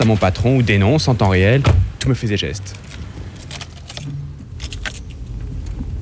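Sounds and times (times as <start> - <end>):
speech: 0.0 - 3.0
car engine starting and rumbling: 0.0 - 6.0
keys jingling: 2.6 - 5.5.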